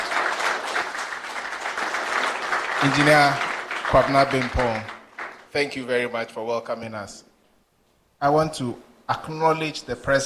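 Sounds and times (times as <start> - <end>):
lecture audience applauding: 0.0 - 5.8
speech: 2.8 - 4.9, 5.5 - 7.3, 8.2 - 10.2.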